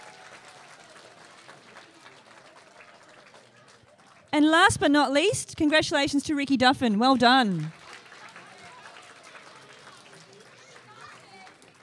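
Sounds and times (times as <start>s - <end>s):
audience applause: 0.0s - 4.3s, 7.3s - 11.8s
speech: 4.4s - 7.8s.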